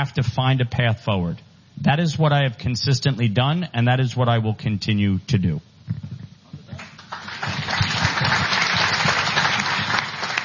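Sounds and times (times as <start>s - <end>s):
speech: 0.0s - 6.0s
audience applause: 6.8s - 10.4s.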